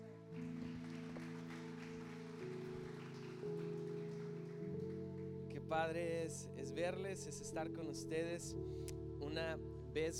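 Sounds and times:
audience applause: 0:00.0 - 0:05.5
speech: 0:05.6 - 0:10.1.

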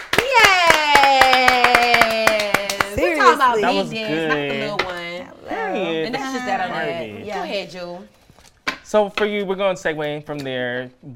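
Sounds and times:
hands clapping: 0:00.0 - 0:03.5
speech: 0:03.3 - 0:04.9, 0:05.8 - 0:08.2, 0:08.9 - 0:11.1.

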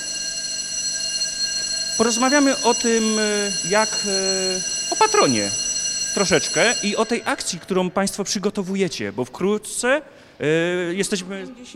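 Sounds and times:
school bell ringing: 0:00.0 - 0:07.9
speech: 0:02.0 - 0:11.7.

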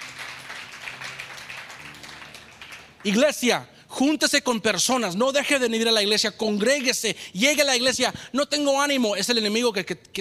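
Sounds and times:
audience applause: 0:00.0 - 0:03.2
speech: 0:03.0 - 0:10.1.

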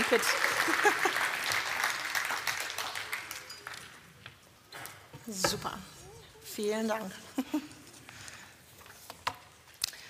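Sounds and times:
laughter: 0:00.0 - 0:01.6
audience applause: 0:00.0 - 0:04.1
speech: 0:00.1 - 0:01.3, 0:05.3 - 0:05.9, 0:06.6 - 0:07.8.

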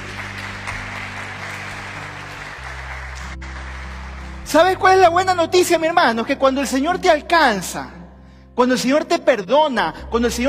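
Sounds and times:
audience applause: 0:00.0 - 0:04.5
speech: 0:04.5 - 0:08.0, 0:08.6 - 0:10.4.

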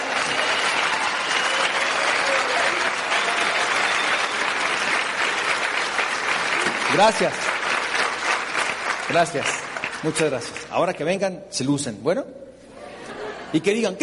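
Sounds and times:
audience applause: 0:00.0 - 0:10.7
speech: 0:07.0 - 0:07.5, 0:09.1 - 0:12.4, 0:13.5 - 0:14.0
laughter: 0:12.7 - 0:14.0.

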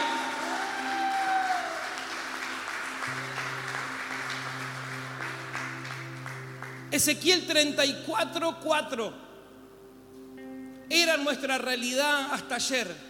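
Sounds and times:
audience applauding: 0:00.0 - 0:06.9
speech: 0:06.9 - 0:09.3, 0:11.2 - 0:13.0.

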